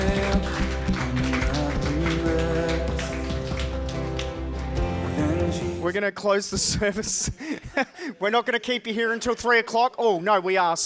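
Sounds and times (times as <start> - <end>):
crowd applause: 0.0 - 5.6
speech: 5.9 - 10.8.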